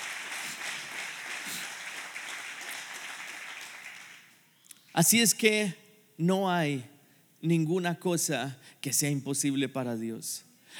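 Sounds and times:
audience applause: 0.0s - 4.4s
speech: 5.0s - 10.7s.

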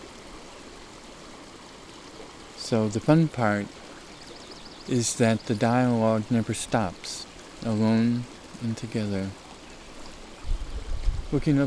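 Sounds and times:
mountain stream water flowing: 0.0s - 11.6s
speech: 2.7s - 3.8s, 4.9s - 9.4s, 11.3s - 11.6s.

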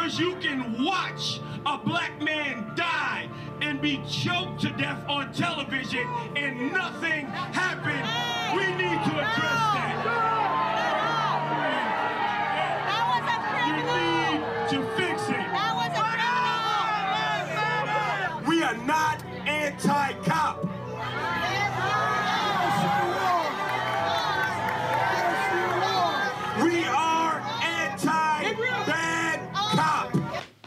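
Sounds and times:
speech: 0.1s - 10.3s
crowd jeering and booing a speaker: 6.0s - 30.4s.

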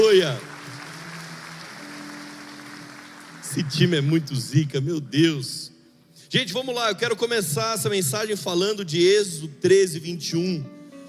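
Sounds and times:
audience applause: 0.0s - 4.5s
speech: 0.2s - 0.5s, 3.5s - 5.7s, 6.3s - 10.8s.

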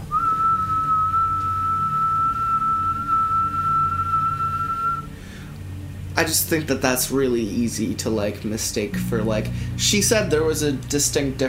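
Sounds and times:
imitated whistled note: 0.0s - 5.1s
low rumbling background: 0.0s - 11.4s
speech: 6.2s - 11.4s.

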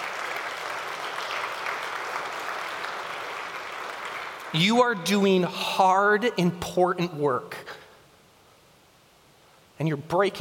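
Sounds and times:
audience applause: 0.0s - 4.6s
speech: 4.5s - 7.7s, 9.8s - 10.3s.

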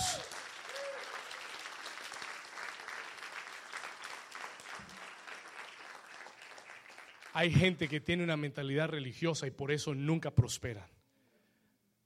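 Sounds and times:
loud applause: 0.0s - 8.2s
speech: 7.4s - 11.0s.

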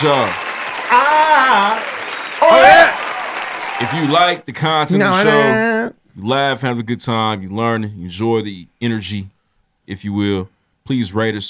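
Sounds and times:
speech: 0.0s - 1.9s, 3.8s - 11.4s
applause: 0.0s - 4.4s
whooping and cheering voices: 0.4s - 5.6s.

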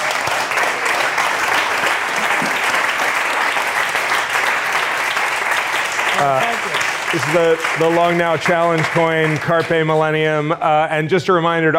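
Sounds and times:
audience applause: 0.0s - 10.2s
speech: 6.2s - 6.5s, 7.1s - 11.7s.

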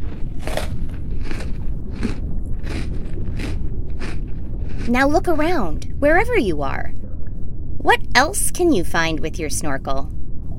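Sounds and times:
crunchy salad being eaten: 0.0s - 4.9s
steady low rumble: 0.0s - 10.5s
speech: 4.9s - 7.0s, 7.8s - 10.2s.

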